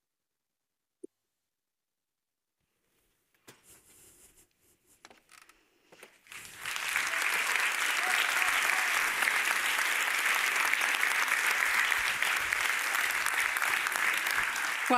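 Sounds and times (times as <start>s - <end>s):
audience applause after a talk: 6.2s - 14.9s.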